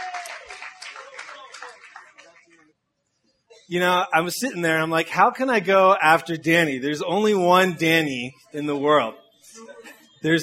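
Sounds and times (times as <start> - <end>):
audience applause: 0.0 - 2.7
speech: 3.7 - 9.2, 10.2 - 10.4.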